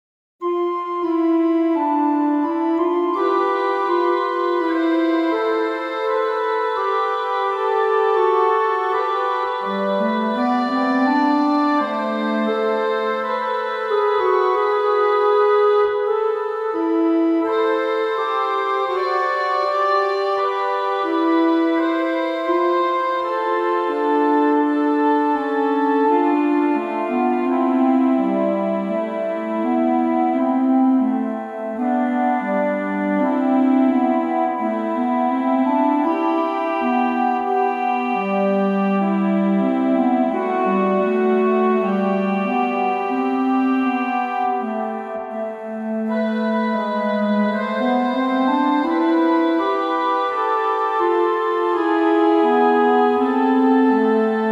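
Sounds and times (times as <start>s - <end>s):
Organteq organ: 0.4s - 54.4s.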